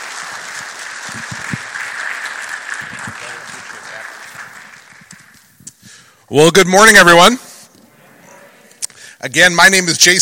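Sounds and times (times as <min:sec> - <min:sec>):
church audience at Calvary clapping for a guest speaker: 0:00.0 - 0:05.8
speech: 0:06.3 - 0:07.4, 0:09.2 - 0:10.2.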